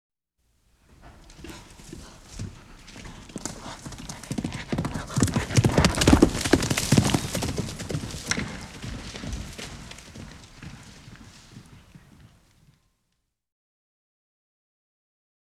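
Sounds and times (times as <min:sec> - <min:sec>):
horse hoofbeats galloping: 0:00.8 - 0:12.9.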